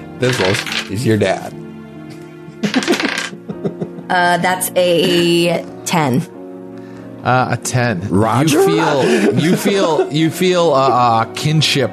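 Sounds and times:
speech: 0:00.2 - 0:01.6, 0:04.1 - 0:06.4, 0:07.2 - 0:11.9
dice rolled across a hard surface: 0:00.3 - 0:00.9, 0:02.7 - 0:03.3
laughter: 0:02.5 - 0:04.1, 0:08.2 - 0:11.5.

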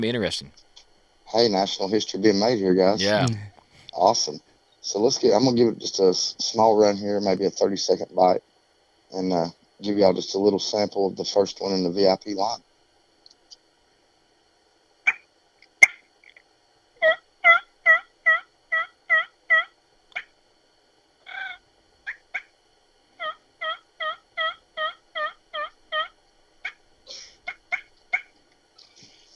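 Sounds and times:
speech: 0:00.0 - 0:08.5, 0:09.1 - 0:12.7
turkey sounds on two-reed bat wing call: 0:15.0 - 0:16.0, 0:17.0 - 0:20.4, 0:21.2 - 0:29.3.

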